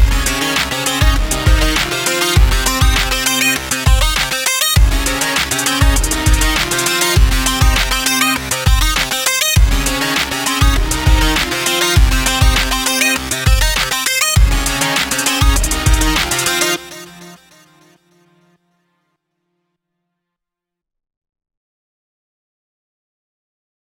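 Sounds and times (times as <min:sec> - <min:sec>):
urban flute music: 0:00.0 - 0:18.2.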